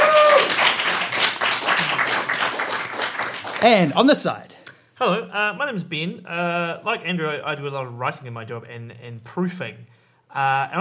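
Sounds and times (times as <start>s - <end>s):
audience applause: 0.0s - 4.2s
speech: 3.6s - 10.8s.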